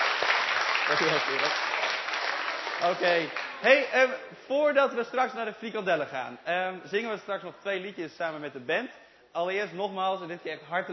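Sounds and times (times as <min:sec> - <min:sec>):
audience applause: 0:00.0 - 0:03.9
speech: 0:00.9 - 0:01.8, 0:02.8 - 0:10.9.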